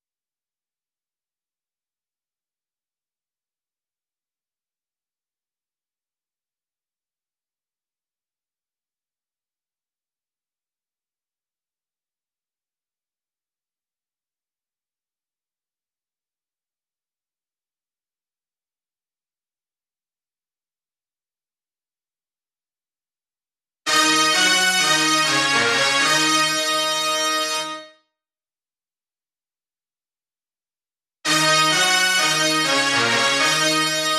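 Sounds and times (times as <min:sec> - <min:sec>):
brass instruments: 0:23.9 - 0:28.0, 0:31.3 - 0:34.1.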